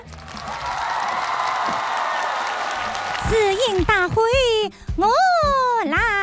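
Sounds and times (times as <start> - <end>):
audience applause: 0.0 - 3.9
speech: 3.3 - 6.1.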